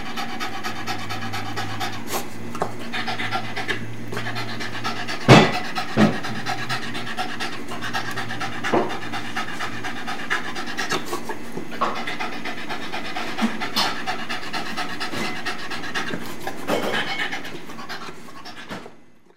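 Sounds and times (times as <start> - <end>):
dog panting in Spring Texas: 0.0 - 19.3.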